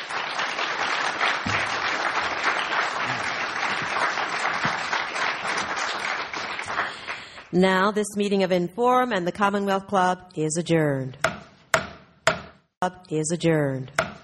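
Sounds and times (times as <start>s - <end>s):
audience clapping for panelists at an evening panel discussion: 0.0s - 7.6s
speech: 7.5s - 11.2s, 12.8s - 14.0s.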